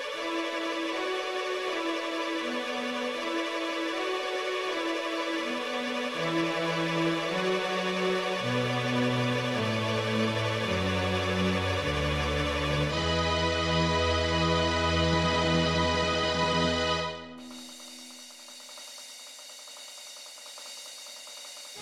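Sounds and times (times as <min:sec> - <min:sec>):
three violins playing: 0:00.1 - 0:17.3.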